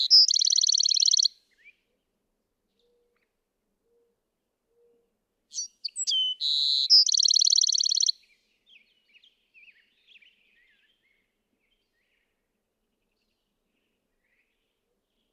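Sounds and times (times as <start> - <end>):
Bewick's wren song: 0.0 - 1.3, 5.5 - 8.2.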